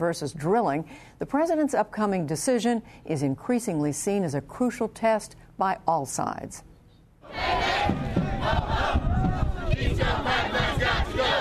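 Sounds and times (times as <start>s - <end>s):
speech: 0.0s - 6.7s
crowd of protesters at a climate rally: 7.2s - 11.3s.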